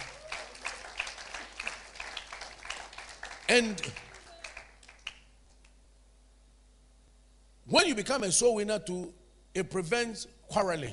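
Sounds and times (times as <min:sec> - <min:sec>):
audience applauding: 0:00.0 - 0:05.4
speech: 0:03.5 - 0:04.0, 0:07.8 - 0:10.9.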